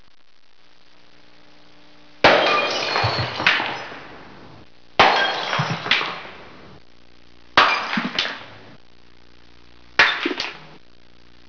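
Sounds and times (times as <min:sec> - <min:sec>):
glass crashes: 0:02.2 - 0:04.2, 0:05.0 - 0:06.4, 0:07.6 - 0:08.6, 0:10.0 - 0:10.6.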